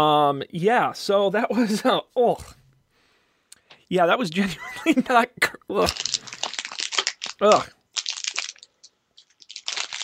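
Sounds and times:
speech: 0.0s - 2.6s, 3.9s - 6.1s, 7.4s - 7.8s
chocolate-covered crickets crunching while being chewed: 5.9s - 10.0s.

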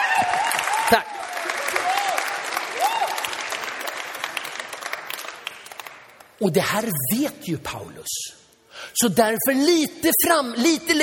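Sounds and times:
people whooping and cheering: 0.0s - 3.9s
crowd clapping: 0.0s - 6.4s
speech: 0.2s - 1.2s, 6.4s - 11.0s.

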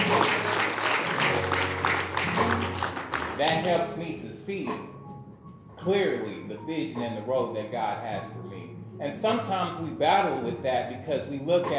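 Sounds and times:
audience applause: 0.0s - 3.7s
speech: 3.4s - 5.0s, 5.8s - 11.7s.

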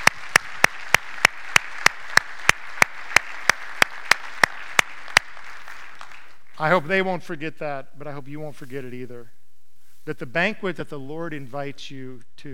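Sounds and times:
audience applause: 0.0s - 6.5s
speech: 6.6s - 9.4s, 10.0s - 12.5s.

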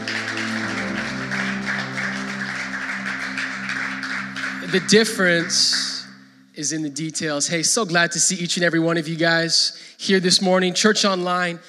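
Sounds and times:
crowd clapping: 0.0s - 6.4s
low sustained keyboard chord: 0.0s - 7.0s
speech: 4.7s - 5.9s, 6.6s - 11.6s.

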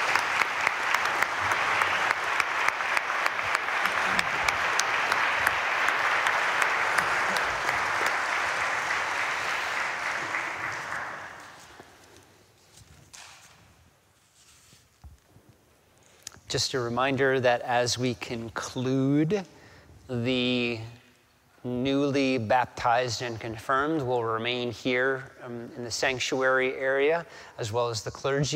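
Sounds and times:
audience applause: 0.0s - 12.1s
speech: 16.5s - 21.0s, 21.6s - 28.5s.

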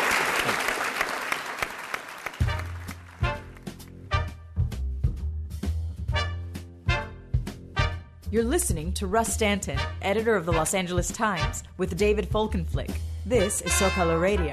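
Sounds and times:
audience applause: 0.0s - 3.8s
speech: 0.4s - 0.7s, 8.3s - 14.5s
rhythmic music with deep bass notes and sharp percussive hits: 2.4s - 14.5s.

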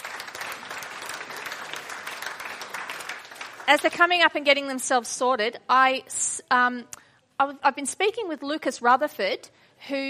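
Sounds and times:
audience clapping: 0.0s - 4.4s
speech: 3.7s - 10.0s.

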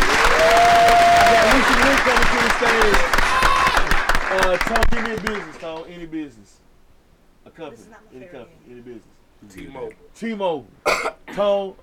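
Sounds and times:
crowd clapping: 0.0s - 5.9s
person shouting: 3.2s - 3.8s
speech: 4.4s - 6.6s, 7.4s - 11.8s.

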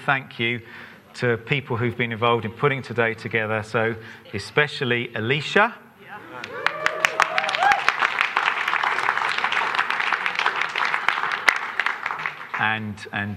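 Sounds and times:
speech: 0.0s - 5.8s, 12.6s - 13.3s
audience applause: 6.2s - 12.8s.

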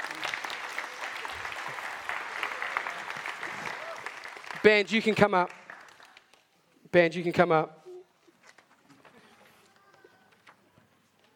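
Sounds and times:
audience applause: 0.0s - 6.4s
speech: 4.6s - 5.6s, 6.9s - 7.8s.

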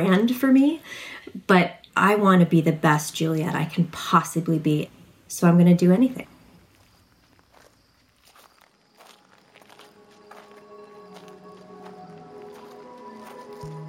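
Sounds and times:
speech: 0.0s - 6.3s
footsteps on a gravel stone ramp through the woods at night: 6.6s - 13.8s.

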